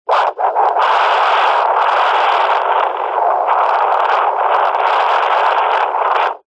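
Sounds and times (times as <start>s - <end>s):
CB radio receiver speaker: 0.1s - 6.4s
wind blowing: 0.1s - 6.4s.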